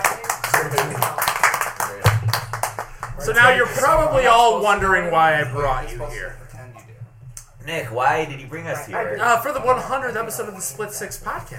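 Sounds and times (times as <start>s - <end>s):
round of applause: 0.0s - 3.3s
speech: 3.2s - 6.4s, 7.6s - 11.5s.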